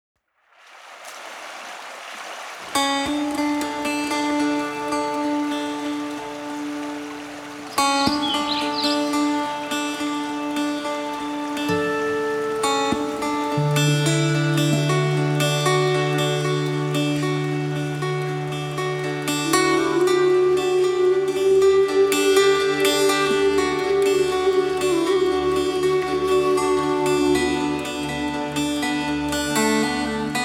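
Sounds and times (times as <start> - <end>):
acoustic music: 2.6 - 30.4.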